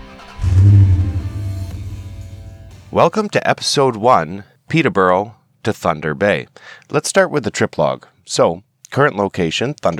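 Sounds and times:
vintage 1992 camper van engine revving: 0:00.0 - 0:03.0
speech: 0:03.0 - 0:09.9.

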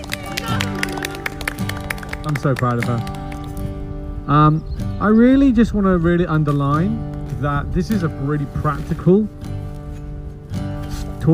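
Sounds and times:
audience clapping: 0:00.0 - 0:03.8
speech: 0:02.3 - 0:03.2, 0:04.3 - 0:09.5.

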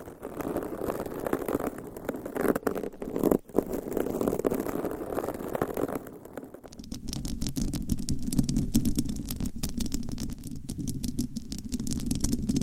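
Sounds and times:
long nails scratching across microphones: 0:00.0 - 0:12.6.

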